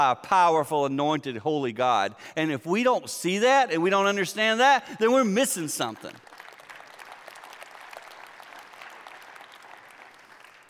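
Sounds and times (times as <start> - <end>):
speech: 0.0 - 6.3
half-hearted applause: 6.0 - 10.6.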